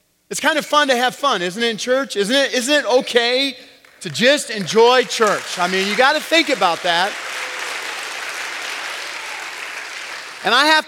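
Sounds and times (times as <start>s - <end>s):
speech: 0.3s - 7.4s, 10.4s - 10.8s
church congregation clapping during a service: 3.8s - 10.8s.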